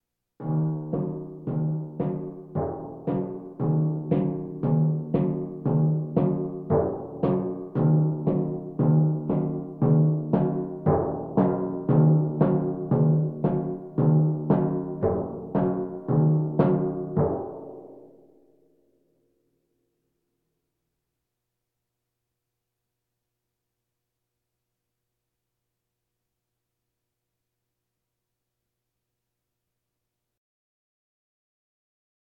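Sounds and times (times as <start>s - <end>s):
bongos: 0.4s - 18.2s
drums: 0.4s - 18.2s.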